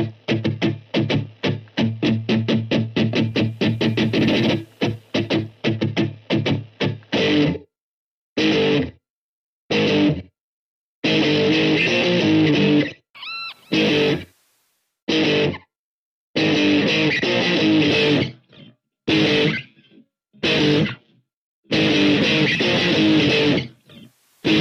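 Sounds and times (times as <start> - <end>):
guitar riff: 0.4 - 7.6, 8.4 - 9.0, 11.0 - 14.4, 15.1 - 15.7, 16.4 - 19.8, 20.4 - 21.1, 21.7 - 24.5.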